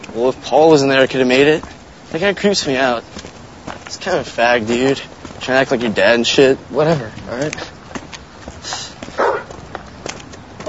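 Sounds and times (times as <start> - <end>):
faint scuffling noise: 0.0 - 10.6
speech: 0.2 - 3.3, 3.9 - 7.7
stray dog barking: 9.2 - 9.5.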